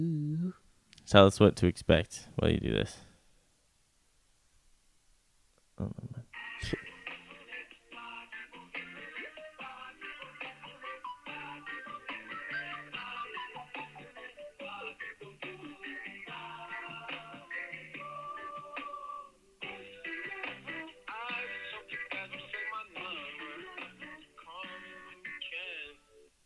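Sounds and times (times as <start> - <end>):
speech: 1.1 - 3.1, 5.8 - 6.9
music snippet played over telephone hotline: 6.3 - 26.4.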